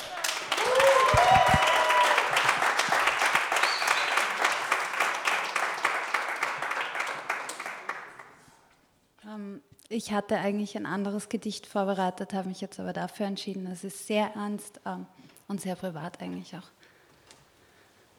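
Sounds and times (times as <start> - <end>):
audience applause for a poet: 0.0 - 8.5
speech: 10.0 - 16.8.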